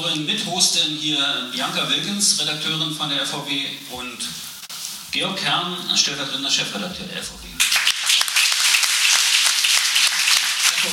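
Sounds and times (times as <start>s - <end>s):
speech: 0.0s - 4.4s, 5.2s - 7.5s
audience applause: 7.6s - 10.9s.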